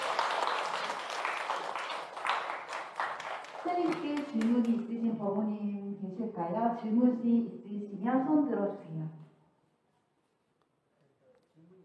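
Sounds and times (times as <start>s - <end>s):
audience applause: 0.0s - 4.7s
speech: 3.6s - 9.2s.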